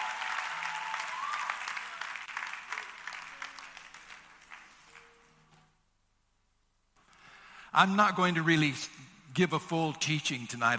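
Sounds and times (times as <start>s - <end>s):
applause: 0.0s - 5.2s
speech: 7.8s - 10.7s.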